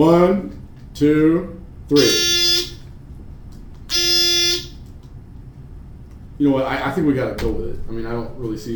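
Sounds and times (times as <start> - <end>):
speech: 0.0 - 2.4, 6.4 - 8.7
quiz buzzers pressed together buzzing: 1.9 - 3.0, 3.9 - 4.9.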